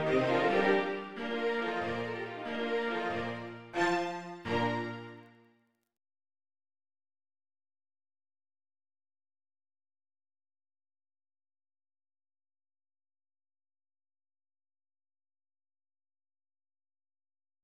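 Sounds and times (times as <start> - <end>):
MIDI string quartet in B-flat major: 0.0 - 5.3.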